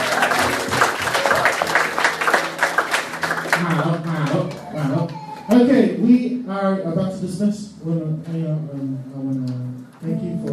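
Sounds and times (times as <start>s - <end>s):
crowd applauding: 0.0s - 5.7s
speech: 5.6s - 9.2s.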